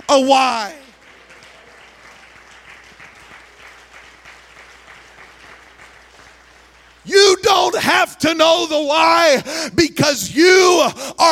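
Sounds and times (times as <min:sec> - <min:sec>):
audience clapping hands: 0:00.0 - 0:07.8
speech: 0:00.1 - 0:00.8, 0:07.1 - 0:11.3.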